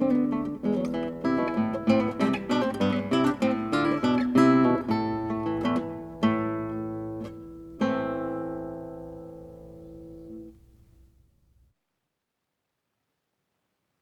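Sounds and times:
baroque guitar playing a jig: 0:00.0 - 0:10.5.

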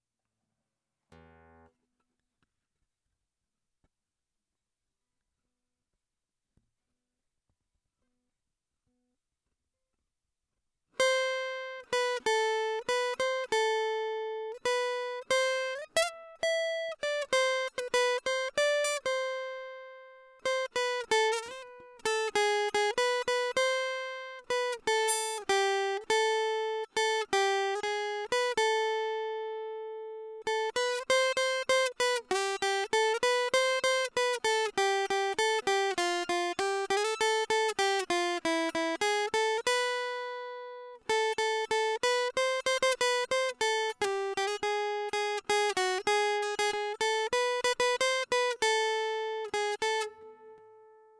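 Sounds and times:
guitar: 0:01.1 - 0:01.8, 0:11.0 - 0:51.1.

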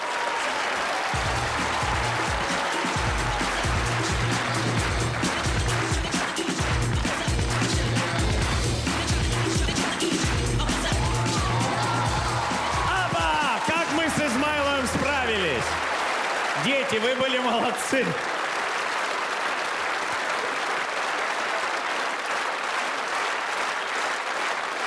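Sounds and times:
audience cheers: 0:00.0 - 0:04.7, 0:10.6 - 0:24.8
crowd clapping: 0:00.0 - 0:24.8
rhythmic music backing: 0:01.1 - 0:16.0
speech: 0:17.7 - 0:18.3.

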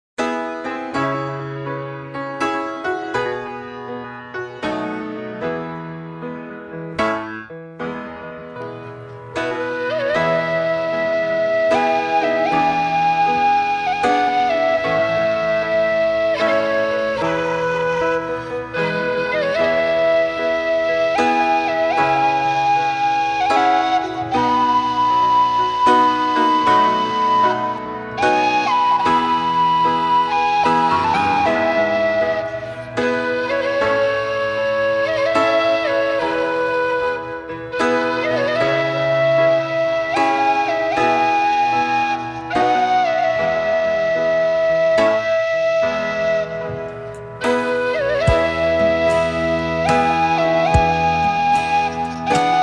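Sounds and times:
flute: 0:00.3 - 0:52.6.

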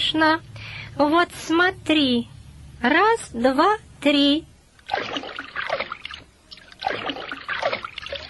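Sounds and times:
speech: 0:00.1 - 0:05.0
water splashing as bird dives underwater: 0:04.8 - 0:08.2.

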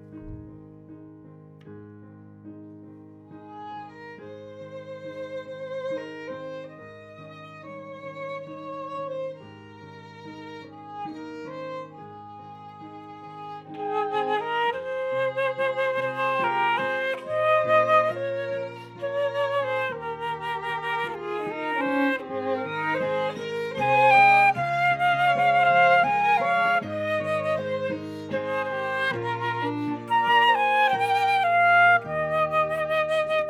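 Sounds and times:
flute: 0:11.1 - 0:33.4.

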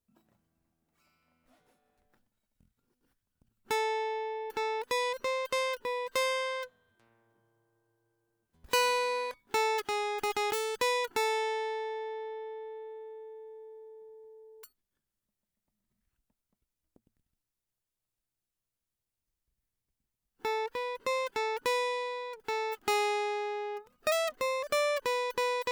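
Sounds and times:
guitar: 0:03.7 - 0:07.5, 0:08.6 - 0:14.7, 0:20.4 - 0:25.7.

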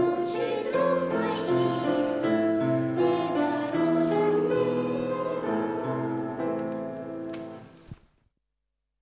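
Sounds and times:
children singing: 0:00.0 - 0:07.2.

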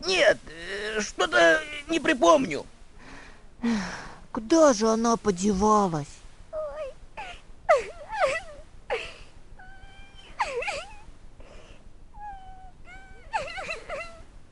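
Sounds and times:
person crying in mournful wails: 0:00.0 - 0:02.1, 0:06.6 - 0:11.0, 0:12.2 - 0:14.3
speech: 0:00.0 - 0:02.7, 0:03.6 - 0:06.2.

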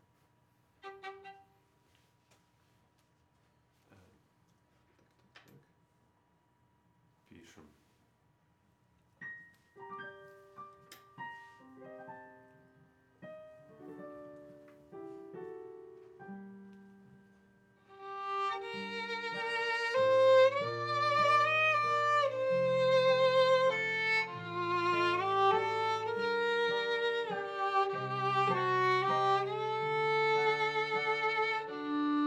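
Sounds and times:
viola playing in C minor: 0:00.8 - 0:01.6, 0:17.9 - 0:32.2.

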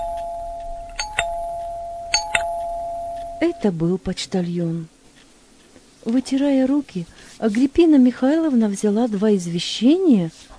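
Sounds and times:
apartment doorbell ringing: 0:00.0 - 0:03.8
speech: 0:03.4 - 0:04.9, 0:06.0 - 0:10.5.

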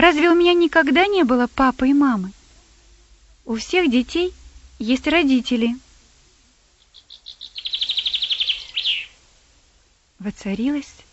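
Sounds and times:
speech: 0:00.0 - 0:02.4, 0:03.5 - 0:05.8, 0:10.2 - 0:11.0
thrush whistling: 0:06.8 - 0:09.2.

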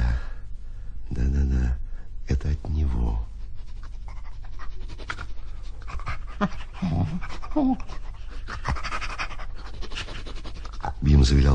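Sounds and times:
constant low hum: 0:00.0 - 0:11.5
dog sniffing and panting: 0:03.0 - 0:11.5
dog whimpering: 0:06.0 - 0:09.4
speech: 0:07.6 - 0:08.0, 0:11.2 - 0:11.5.

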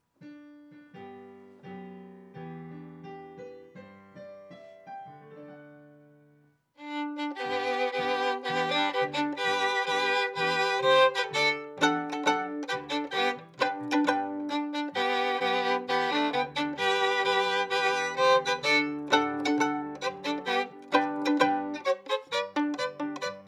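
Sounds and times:
viola playing D: 0:06.8 - 0:23.4.

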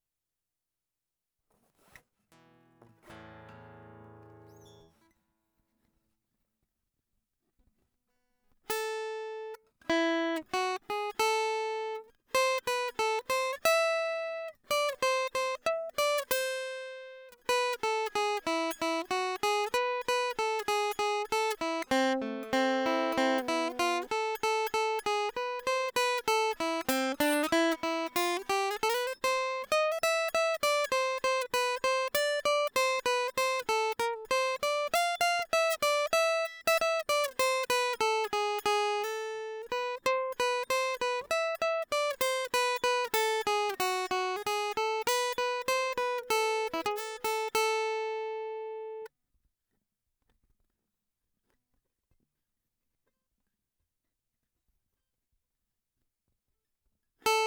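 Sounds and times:
guitar: 0:01.8 - 0:05.2, 0:08.7 - 0:49.1, 0:57.2 - 0:57.4.

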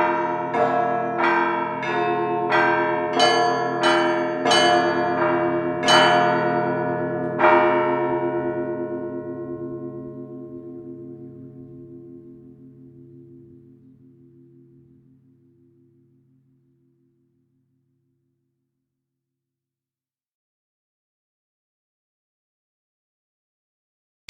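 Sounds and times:
traditional church bell ringing: 0:00.0 - 0:12.0.

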